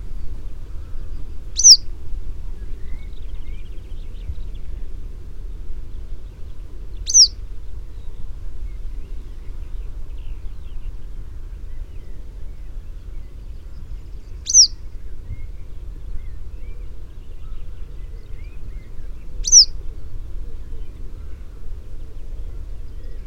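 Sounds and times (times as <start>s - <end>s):
low steady rumble: 0.0s - 23.2s
yellow wagtail calling: 0.8s - 1.8s, 7.0s - 7.4s, 14.2s - 14.9s, 16.6s - 19.8s.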